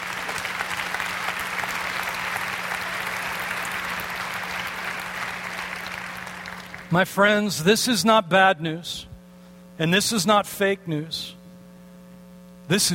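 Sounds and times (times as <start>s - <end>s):
audience applause: 0.0s - 6.9s
speech: 6.9s - 9.1s, 9.8s - 11.4s, 12.7s - 12.9s.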